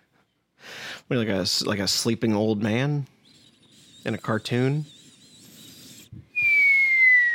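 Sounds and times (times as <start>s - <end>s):
speech: 1.1s - 3.2s, 4.0s - 5.0s
whistling nose while breathing: 3.2s - 7.3s.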